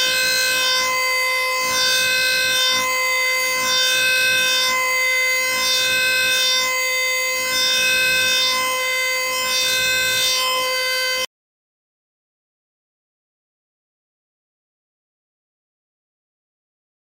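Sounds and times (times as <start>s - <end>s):
siren: 0.0s - 11.3s.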